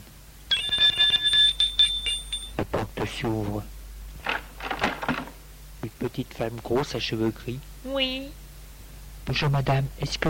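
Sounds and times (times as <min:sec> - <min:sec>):
electric doorbell ringing: 0:00.5 - 0:02.6
speech: 0:03.2 - 0:03.8, 0:06.0 - 0:08.4, 0:09.3 - 0:10.2.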